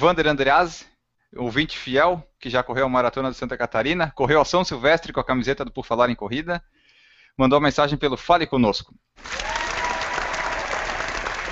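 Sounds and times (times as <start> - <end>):
speech: 0.0 - 6.8, 7.4 - 9.6
applause sound effect: 9.2 - 11.5.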